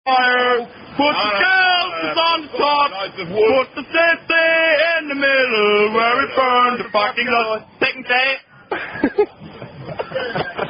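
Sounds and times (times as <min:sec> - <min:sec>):
drunk German people singing: 0:00.1 - 0:08.1
laughter: 0:01.0 - 0:04.0, 0:08.6 - 0:10.6.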